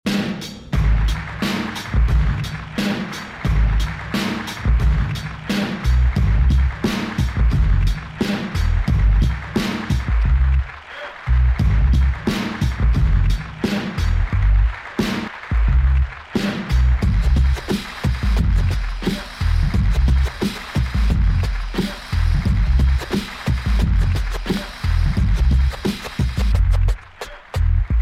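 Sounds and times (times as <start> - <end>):
bonus beats: 0.1 - 27.9.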